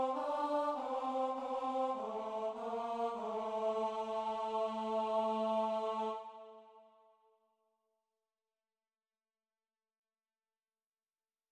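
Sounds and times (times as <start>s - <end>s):
tenor voices singing Christmas choral pieces: 0.0s - 6.9s.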